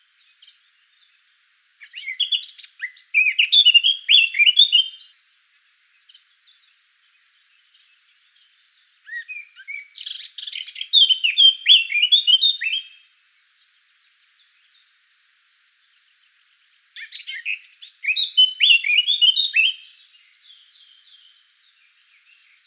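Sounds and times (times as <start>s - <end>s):
Eurasian blackcap song: 0.0s - 15.0s, 15.8s - 22.6s.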